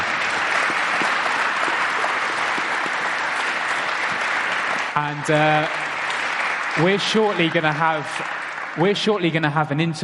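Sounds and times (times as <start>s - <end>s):
audience round of applause: 0.0s - 10.0s
speech: 5.0s - 5.9s, 6.8s - 10.0s.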